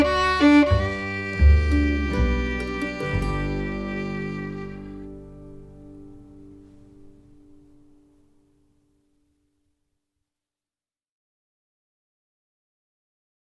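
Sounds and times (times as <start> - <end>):
waltz music: 0.0 - 8.0.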